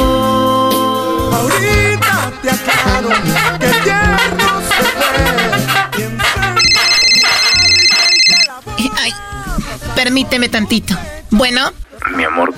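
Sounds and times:
busy music: 0.0 - 12.5
laughter: 1.6 - 7.8
phone ringing with an electronic trill: 6.6 - 8.6
speech: 10.2 - 12.5.

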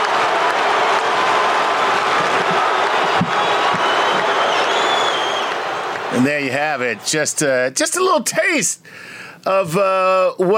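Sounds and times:
applause: 0.0 - 6.5
basketball arena crowd roaring and cheering: 0.0 - 7.7
shrill whistles: 2.7 - 6.0
speech: 6.2 - 10.5.

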